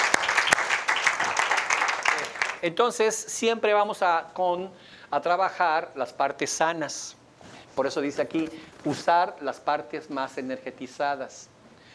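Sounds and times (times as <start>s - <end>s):
applause: 0.0s - 2.6s
speech: 2.6s - 7.2s, 7.8s - 11.5s.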